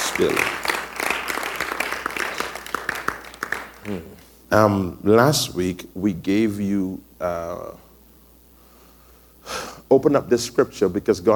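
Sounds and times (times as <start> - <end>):
audience clapping: 0.0 - 4.3
speech: 0.2 - 0.6, 3.9 - 7.9, 9.9 - 11.3.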